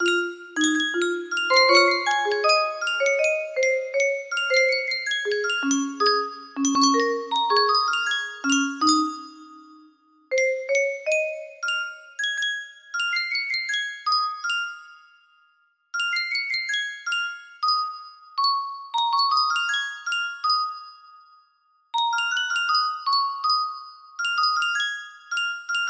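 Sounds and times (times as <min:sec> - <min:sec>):
music box melody: 0:00.0 - 0:25.8.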